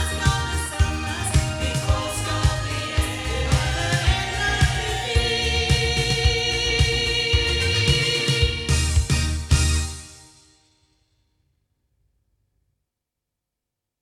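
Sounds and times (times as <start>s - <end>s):
sound from back loudspeakers: 0.0s - 10.2s.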